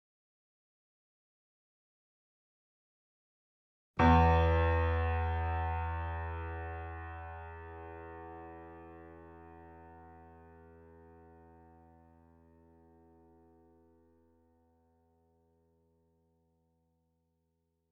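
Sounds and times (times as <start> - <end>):
grand piano and sampled piano notes: 4.0 - 13.6.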